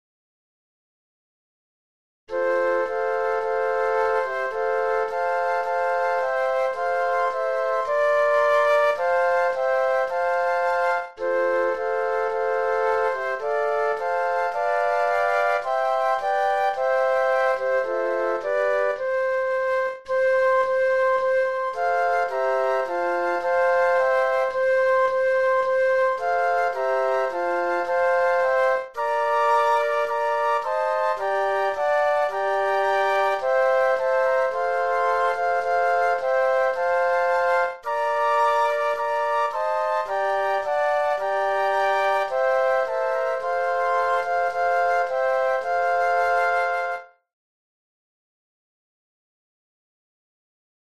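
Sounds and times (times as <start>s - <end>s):
flute quartet: 2.3s - 47.3s.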